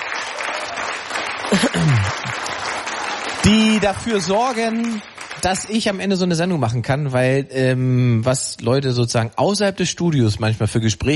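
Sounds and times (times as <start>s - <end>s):
studio audience applause for a radio show's editorial staff: 0.0s - 6.4s
speech: 1.5s - 2.6s, 3.5s - 11.1s.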